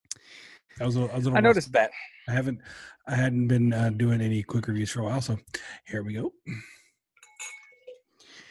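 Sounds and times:
speech: 0:00.7 - 0:06.8
glass clink: 0:07.2 - 0:08.0.

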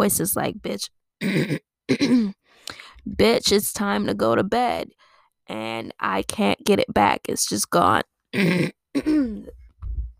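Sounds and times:
speech: 0:00.0 - 0:09.6
throat clearing: 0:08.4 - 0:09.6.

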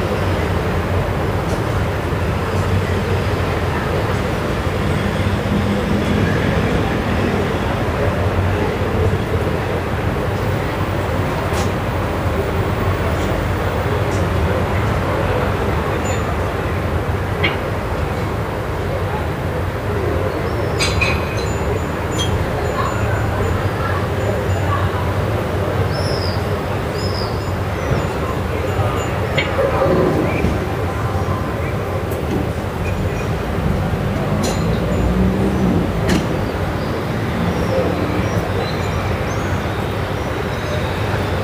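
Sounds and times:
evening traffic rumble on Via Moscova in Milan: 0:00.0 - 0:41.4
voices on an evening street in Milan: 0:00.0 - 0:41.4.

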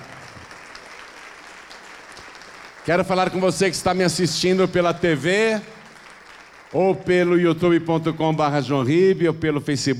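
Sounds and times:
church audience applauding: 0:00.0 - 0:06.9
speech: 0:02.9 - 0:05.8, 0:06.7 - 0:09.9.

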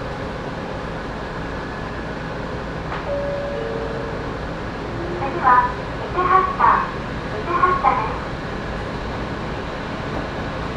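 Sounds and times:
Sangi Railway Sangi Line train rumble: 0:00.0 - 0:10.7
brief thin tone: 0:03.1 - 0:04.4.

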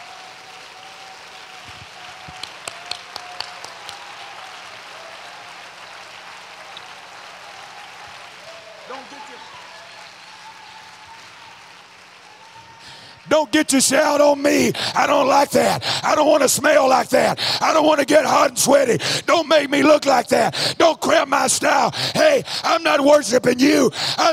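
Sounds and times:
crowd audience clapping hands together: 0:00.0 - 0:19.0
speech: 0:13.2 - 0:24.3.

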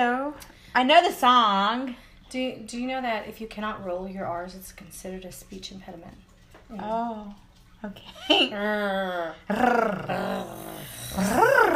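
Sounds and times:
speech: 0:00.0 - 0:11.7
person imitating a cat purr: 0:08.6 - 0:11.7.

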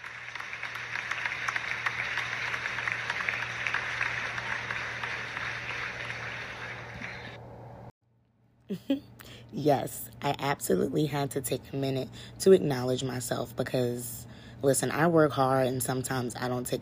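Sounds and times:
round of applause: 0:00.0 - 0:07.4
speech: 0:08.7 - 0:16.8.

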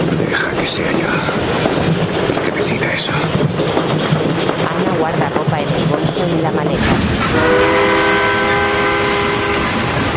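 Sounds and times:
train rumbling through a dark tunnel: 0:00.0 - 0:10.1
speech: 0:00.7 - 0:01.8, 0:02.6 - 0:07.8
train whistle: 0:07.2 - 0:10.1.

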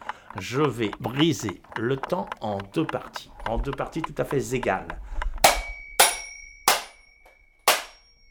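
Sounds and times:
speech: 0:00.4 - 0:05.2
small hammer striking an alarm clock: 0:05.4 - 0:08.2.

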